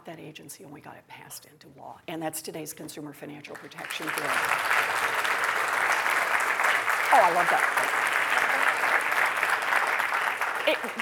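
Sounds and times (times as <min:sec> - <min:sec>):
speech: 0:00.1 - 0:05.4, 0:07.1 - 0:08.2, 0:10.6 - 0:10.9
audience applause: 0:03.8 - 0:10.9.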